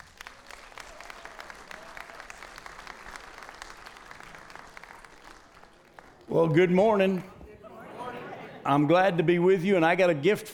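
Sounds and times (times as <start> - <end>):
church congregation applause welcoming a speaker: 0.0 - 7.3
speech: 6.3 - 7.3, 8.7 - 10.5.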